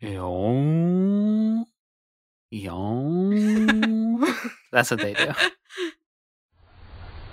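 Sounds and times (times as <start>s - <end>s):
person imitating a whale call: 0.4s - 1.7s
speech: 2.5s - 3.2s, 4.7s - 5.6s
laughter: 3.4s - 5.9s.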